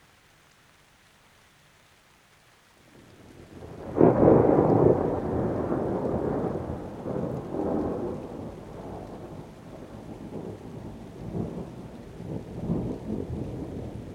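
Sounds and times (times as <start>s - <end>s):
rain: 0.0s - 14.1s
thunder: 3.5s - 14.1s.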